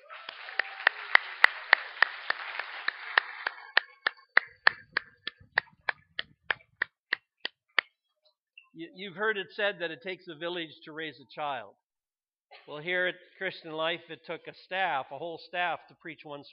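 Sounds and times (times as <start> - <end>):
audience applauding: 0.0 - 6.7
speech: 8.8 - 11.8, 12.7 - 16.5.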